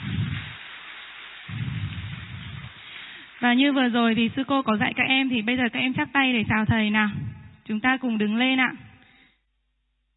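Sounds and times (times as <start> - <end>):
applause welcoming the teacher: 0.0 - 3.4
speech: 3.4 - 8.9.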